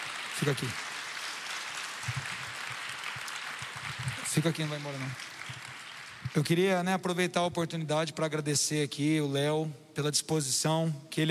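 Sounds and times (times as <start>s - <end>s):
audience applause: 0.0s - 6.6s
speech: 0.4s - 0.8s, 4.4s - 5.2s, 6.3s - 11.2s.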